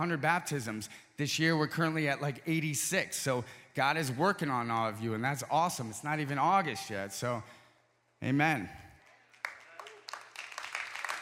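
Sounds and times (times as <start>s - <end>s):
speech: 0.0s - 7.6s, 8.2s - 8.8s
audience applause: 9.3s - 11.1s.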